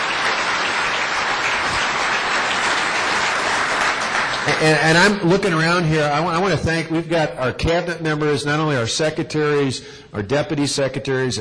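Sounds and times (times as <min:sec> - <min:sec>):
crowd applause: 0:00.0 - 0:05.8
speech: 0:04.6 - 0:11.3.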